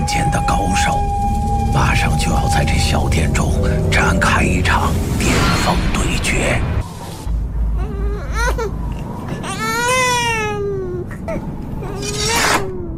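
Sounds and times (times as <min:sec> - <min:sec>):
low rumble: 0:00.0 - 0:09.4
infant crying: 0:07.8 - 0:12.9.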